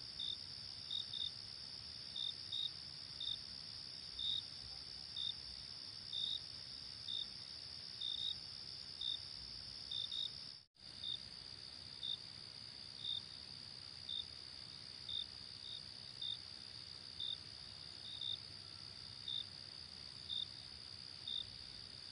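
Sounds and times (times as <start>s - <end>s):
crickets chirping at night: 0.0s - 22.1s
soft low background hiss: 0.0s - 22.1s
steady high insect drone: 0.0s - 22.1s.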